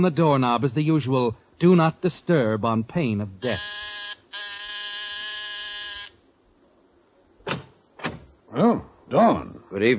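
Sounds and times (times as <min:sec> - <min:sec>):
speech: 0:00.0 - 0:04.4, 0:08.6 - 0:09.9
apartment door buzzer: 0:03.4 - 0:06.2.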